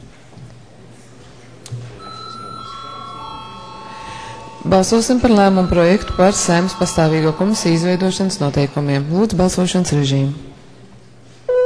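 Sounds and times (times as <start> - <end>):
low murmur of room noise and faint voices: 0.6 - 11.2
parliament bell ringing before vote: 2.0 - 10.0
speech: 4.6 - 10.5.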